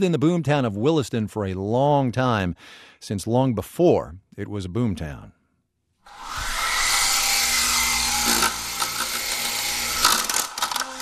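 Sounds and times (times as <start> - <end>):
speech: 0.0 - 5.4
remote-controlled helicopter motor buzzing: 6.1 - 11.0.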